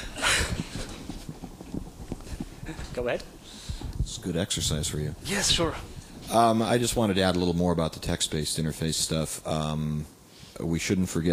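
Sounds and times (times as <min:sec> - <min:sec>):
footsteps running up stairs: 0:00.0 - 0:05.2
speech: 0:02.7 - 0:11.3.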